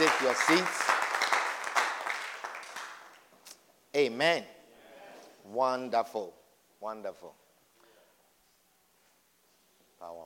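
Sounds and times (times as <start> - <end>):
audience clapping for Jesus: 0.0 - 3.3
speech: 0.1 - 0.9, 3.9 - 4.6, 5.5 - 7.4.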